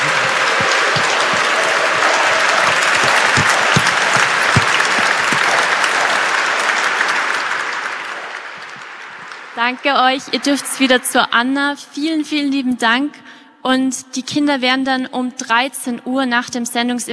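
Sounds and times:
loud audience applause: 0:00.0 - 0:11.3
speech: 0:09.7 - 0:17.1.

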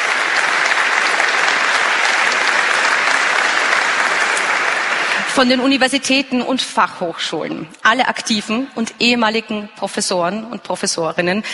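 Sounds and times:
audience applause: 0:00.0 - 0:06.2
speech: 0:05.4 - 0:11.5.

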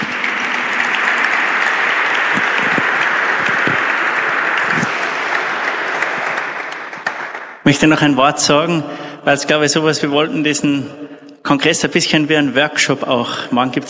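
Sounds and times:
audience applause: 0:00.0 - 0:07.7
speech: 0:07.7 - 0:13.8.

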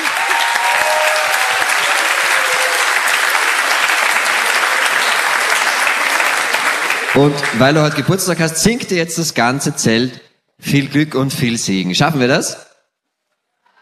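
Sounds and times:
audience applause: 0:00.0 - 0:08.1
speech: 0:07.2 - 0:12.7.

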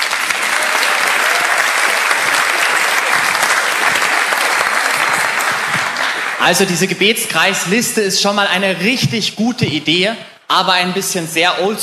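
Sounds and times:
audience applause: 0:00.0 - 0:06.7
speech: 0:06.4 - 0:11.8.

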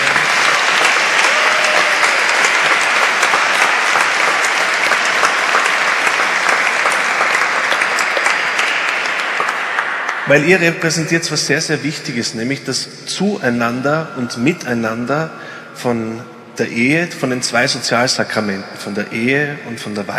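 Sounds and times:
audience applause: 0:00.0 - 0:10.8
speech: 0:10.3 - 0:20.1.

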